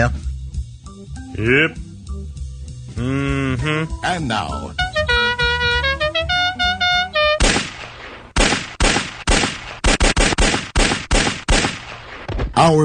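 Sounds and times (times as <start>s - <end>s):
speech: 0.0s - 0.3s, 1.1s - 1.9s, 3.0s - 5.2s, 12.6s - 12.8s
short melodic tone sequence: 4.7s - 7.4s
gunshot sound effect: 7.4s - 12.4s.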